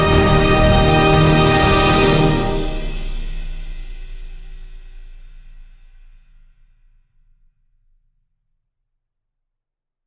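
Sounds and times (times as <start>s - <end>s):
dramatic flare: 0.0s - 3.6s.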